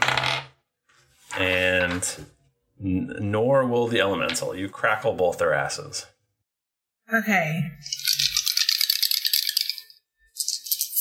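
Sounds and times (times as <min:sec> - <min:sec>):
speech: 0:01.4 - 0:06.1, 0:07.1 - 0:08.1
dice rattling and clattering: 0:07.8 - 0:10.9.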